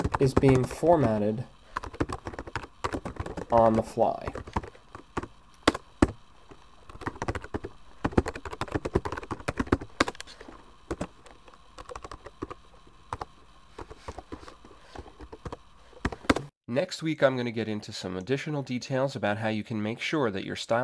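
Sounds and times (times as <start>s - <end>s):
typing on a computer keyboard into a layout program: 0.0s - 6.2s, 6.9s - 16.5s
speech: 0.2s - 1.6s, 3.5s - 4.4s, 16.9s - 20.8s.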